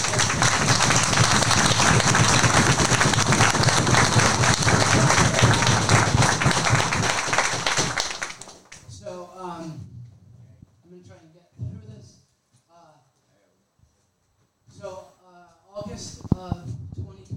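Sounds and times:
crowd applauding: 0.0 - 8.8.

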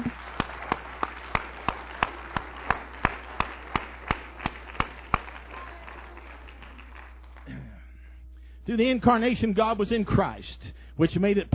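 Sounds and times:
audience hand clapping: 0.0 - 7.7
speech: 8.7 - 11.5.

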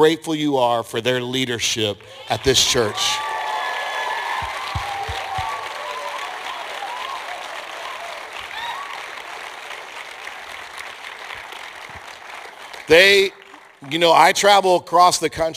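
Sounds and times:
speech: 0.0 - 3.3, 12.9 - 15.5
audience clapping: 1.8 - 14.6
cheers: 2.0 - 13.8.

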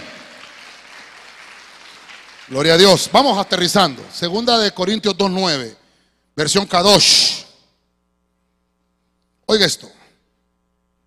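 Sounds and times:
audience clapping hands: 0.0 - 4.8
speech: 2.5 - 5.8, 6.4 - 7.4, 9.5 - 10.0.

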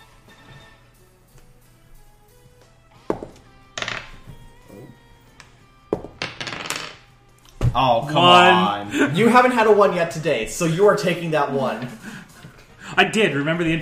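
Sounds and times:
dice rolled on a hard surface in a tabletop game: 3.8 - 4.2, 6.0 - 7.0
speech: 7.7 - 12.1, 13.0 - 13.8.

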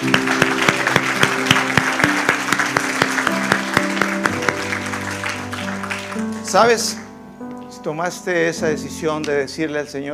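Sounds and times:
audience applause: 0.0 - 7.1
sustained keyboard chords: 0.0 - 10.1
speech: 6.5 - 7.0, 7.8 - 10.1.

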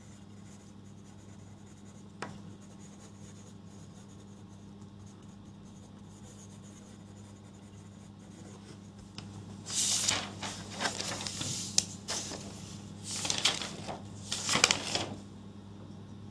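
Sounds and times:
pen scratching on paper, re-writing notes: 0.0 - 8.9
low steady hum: 0.0 - 16.3.

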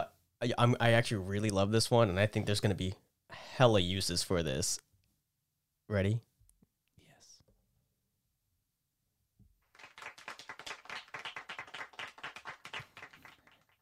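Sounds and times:
speech: 0.4 - 3.0, 3.6 - 4.8, 5.9 - 6.3
small condescending clap sound effect: 9.6 - 13.8.

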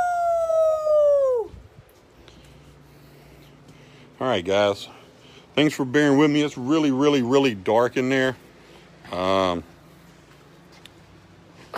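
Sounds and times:
person imitating a Sasquatch yell: 0.0 - 1.5
speech: 4.2 - 5.0, 5.6 - 8.4, 9.1 - 9.7.

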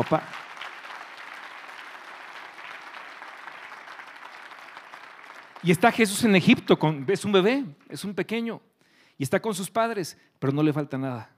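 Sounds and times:
speech: 0.0 - 0.4, 5.6 - 11.3
audience applause: 0.0 - 6.6.

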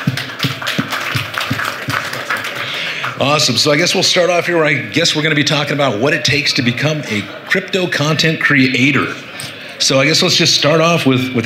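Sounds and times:
faint rhythmic thump: 0.0 - 2.3
audience applause: 0.0 - 3.9
speech: 3.2 - 11.4.

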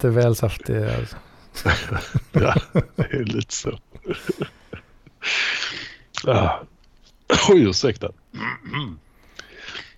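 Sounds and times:
speech: 0.0 - 4.6, 6.2 - 6.7, 7.3 - 9.1
laughter: 1.6 - 4.9
coughing: 1.6 - 6.7, 7.3 - 7.7, 8.3 - 9.9.

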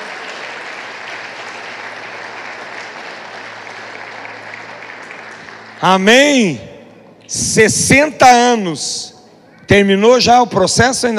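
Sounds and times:
audience applauding: 0.0 - 6.6
speech: 5.8 - 6.7, 7.3 - 9.1, 9.7 - 11.1.

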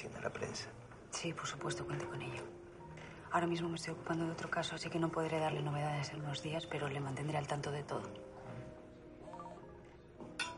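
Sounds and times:
speech: 0.0 - 2.6, 3.3 - 8.3
mobile phone ringtone: 9.3 - 9.7.

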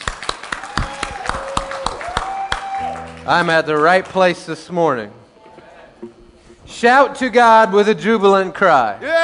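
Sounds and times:
audience clapping hands: 0.0 - 4.4
speech: 3.2 - 5.2, 6.0 - 9.1.

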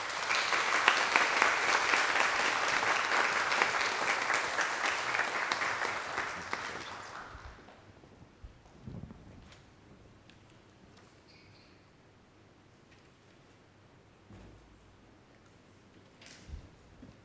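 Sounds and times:
audience applauding in a large room: 0.0 - 7.7.

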